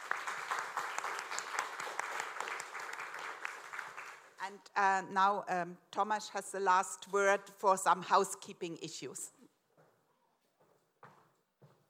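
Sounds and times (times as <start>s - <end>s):
audience applause: 0.0s - 4.4s
speech: 4.5s - 9.4s.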